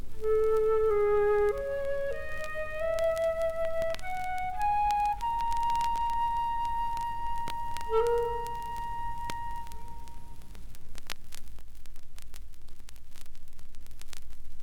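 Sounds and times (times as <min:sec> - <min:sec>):
wind instruments and percussion: 0:00.2 - 0:10.3.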